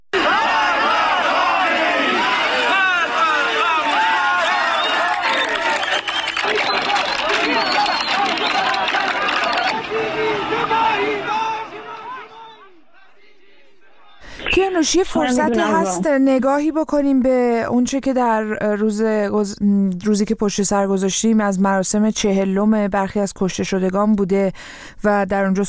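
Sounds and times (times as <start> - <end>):
protest crowd chanting slogans in street: 0.2 - 16.1
speech: 14.8 - 25.6.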